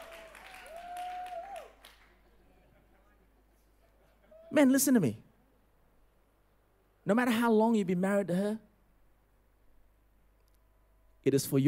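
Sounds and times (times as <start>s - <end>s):
cheering from married women in audience: 0.0s - 2.0s
speech: 4.5s - 5.3s, 7.1s - 8.7s, 11.2s - 11.6s.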